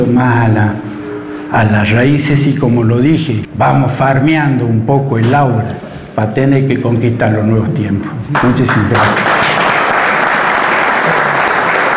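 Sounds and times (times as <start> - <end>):
speech: 0.0 - 9.3
loud audience applause after a speech: 8.4 - 11.9.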